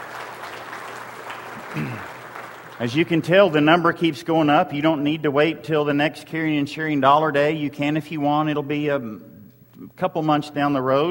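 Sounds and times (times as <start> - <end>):
crowd clapping: 0.0 - 3.8
speech: 1.8 - 2.1, 2.8 - 11.0.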